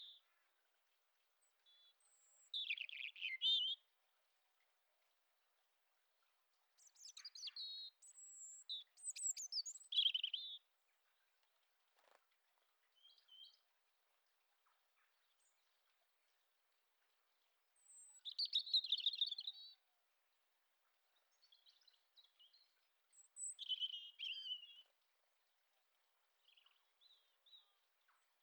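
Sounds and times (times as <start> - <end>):
European robin singing: 2.5 - 3.8, 7.1 - 10.6, 17.9 - 19.8, 23.2 - 24.9.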